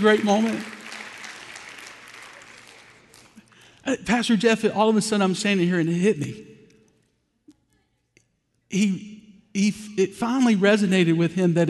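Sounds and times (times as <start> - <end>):
speech: 0.0 - 0.7, 3.9 - 6.5, 8.7 - 11.6
audience clapping: 0.0 - 3.8.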